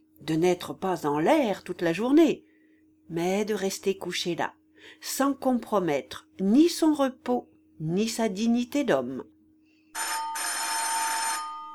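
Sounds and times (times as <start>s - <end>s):
speech: 0.2s - 2.5s, 3.1s - 9.3s
doorbell ringing: 10.0s - 11.7s.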